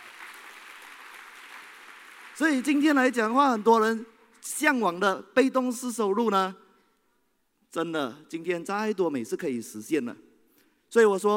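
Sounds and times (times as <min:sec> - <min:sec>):
audience applause: 0:00.0 - 0:02.6
speech: 0:02.4 - 0:06.6, 0:07.7 - 0:10.3, 0:10.9 - 0:11.3.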